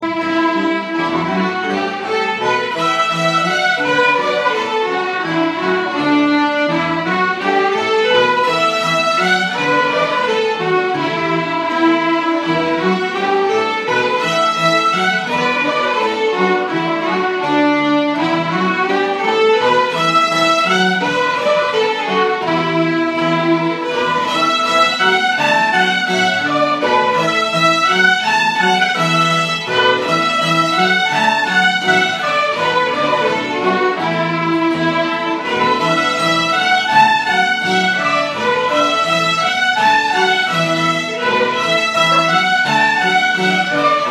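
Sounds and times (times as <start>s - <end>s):
polka music: 0.0s - 44.0s.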